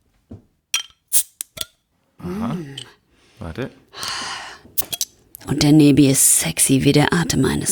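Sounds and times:
glass and metal clinks: 0:00.8 - 0:01.7
bottle of Wychwood King Goblin beer being opened: 0:00.8 - 0:01.8, 0:04.8 - 0:05.2
speech: 0:03.5 - 0:03.9, 0:05.5 - 0:07.6.

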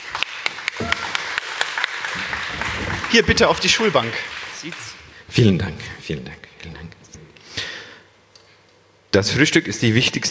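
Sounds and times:
light sparse audience clapping welcoming an author: 0:00.0 - 0:05.1
speech: 0:03.1 - 0:07.0, 0:09.1 - 0:10.2.

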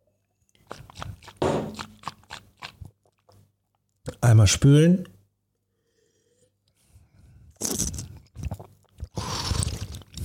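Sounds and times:
person taking a short sip of water: 0:00.5 - 0:03.4, 0:07.5 - 0:10.2
speech: 0:04.2 - 0:05.1.

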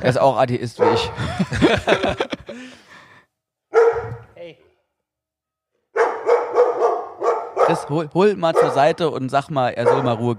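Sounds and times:
speech: 0:00.0 - 0:02.6, 0:07.7 - 0:10.3
dog barking: 0:00.8 - 0:01.2, 0:03.7 - 0:04.3, 0:05.9 - 0:09.0, 0:09.8 - 0:10.3
laughter: 0:00.9 - 0:03.1.

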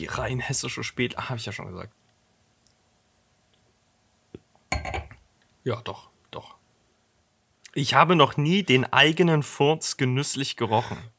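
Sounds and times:
speech: 0:00.0 - 0:02.0, 0:05.6 - 0:06.6, 0:07.7 - 0:11.1
glass clinking as a drink is refilled: 0:04.7 - 0:05.2.

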